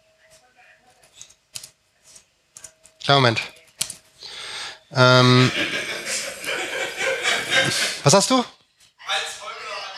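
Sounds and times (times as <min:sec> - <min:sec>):
computer keyboard typing while writing an email: 0:01.1 - 0:01.8, 0:03.6 - 0:04.0
speech: 0:03.1 - 0:03.6, 0:04.9 - 0:05.9, 0:07.7 - 0:08.6
laughter: 0:05.0 - 0:08.4.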